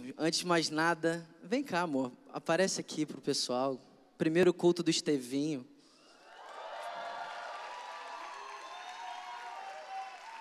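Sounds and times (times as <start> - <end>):
speech: 0.1 - 5.7
soft applause from a large group: 6.2 - 10.4.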